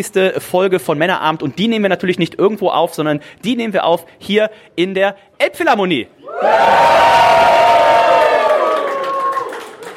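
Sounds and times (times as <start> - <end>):
speech: 0.0 - 7.4
high shouts: 6.2 - 9.6
live crowd cheering and whooping: 6.2 - 9.9.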